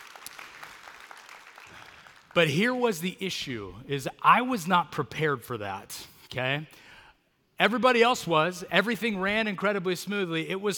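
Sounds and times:
crowd clapping: 0.0 - 2.5
speech: 2.4 - 6.9, 7.6 - 10.7.

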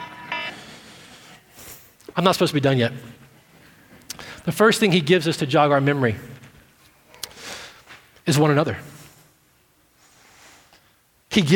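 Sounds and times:
alarm going off: 0.0 - 0.9
speech: 2.2 - 3.2, 4.4 - 6.3, 8.3 - 8.9, 11.4 - 11.5.

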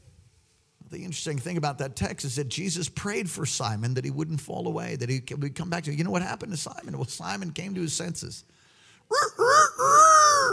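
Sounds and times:
speech: 0.9 - 10.0
person imitating rooster crow: 9.1 - 10.5.

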